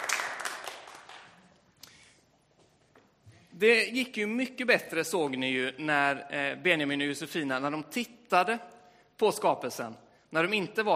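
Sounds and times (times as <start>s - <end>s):
audience applause: 0.0s - 1.4s
speech: 3.6s - 10.9s.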